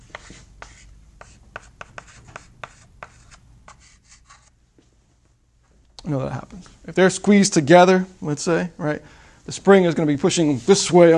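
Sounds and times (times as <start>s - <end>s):
marker drawing arrows on a board: 0.0s - 4.5s
speech: 6.1s - 11.1s.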